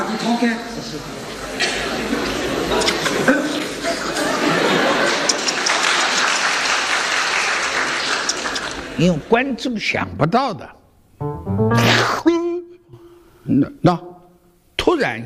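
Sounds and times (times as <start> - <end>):
speech: 0.2 - 3.3, 9.0 - 12.0, 13.5 - 14.1, 14.9 - 15.2
laughter: 1.9 - 6.2
audience applause during a stage act: 4.7 - 8.8.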